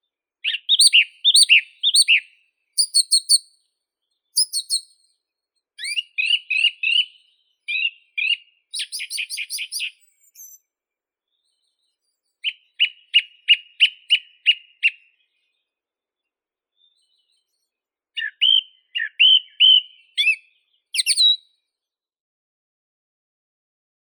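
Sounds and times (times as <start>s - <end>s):
song thrush Turdus philomelos singing: 0.4s - 3.6s, 4.2s - 5.1s, 5.8s - 10.6s, 11.3s - 15.6s, 18.2s - 21.5s.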